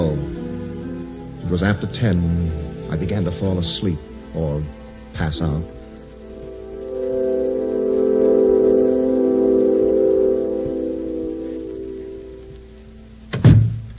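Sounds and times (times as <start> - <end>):
low droning hum: 0.0 - 13.3
speech: 1.5 - 5.8
door shutting thud: 13.4 - 13.8.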